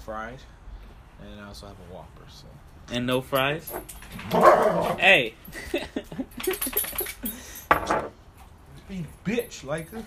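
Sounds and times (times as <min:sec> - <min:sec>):
speech: 0:00.1 - 0:00.6, 0:01.2 - 0:08.1, 0:08.9 - 0:10.0
dog barking and whining: 0:04.1 - 0:05.1.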